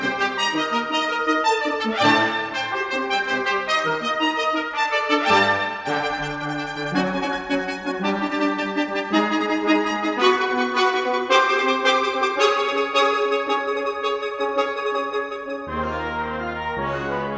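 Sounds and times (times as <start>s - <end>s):
brass fanfare: 0.0s - 17.3s.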